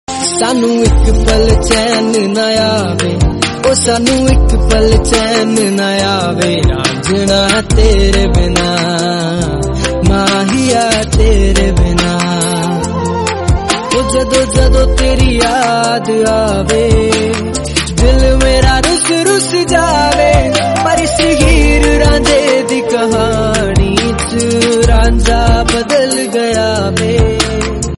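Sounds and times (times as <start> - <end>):
Punjabi music: 0.1 - 27.9.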